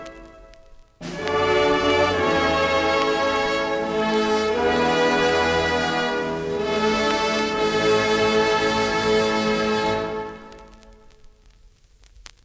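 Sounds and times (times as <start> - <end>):
band playing: 1.0 - 10.9.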